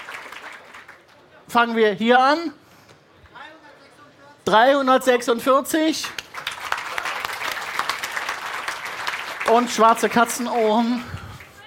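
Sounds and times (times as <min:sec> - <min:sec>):
audience applause: 0:00.0 - 0:01.1, 0:06.2 - 0:11.6
speech: 0:01.5 - 0:02.6, 0:04.5 - 0:06.2, 0:09.5 - 0:11.2.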